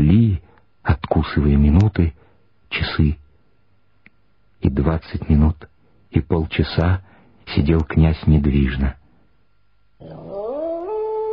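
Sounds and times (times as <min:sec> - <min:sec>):
speech: 0:00.3 - 0:03.2, 0:04.6 - 0:09.0, 0:10.0 - 0:10.4
dog howling: 0:10.0 - 0:11.3.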